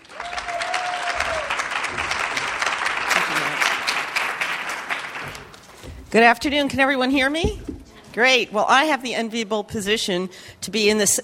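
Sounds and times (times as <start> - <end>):
audience at a business education event applauding to welcome a speaker: 0.0 - 5.7
speech: 6.1 - 7.6, 8.2 - 11.2.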